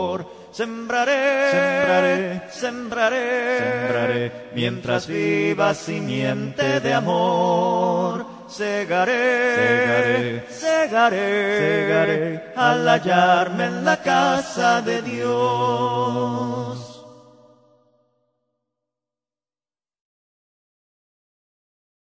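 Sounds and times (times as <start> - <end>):
Christian hymn: 0.0 - 17.6.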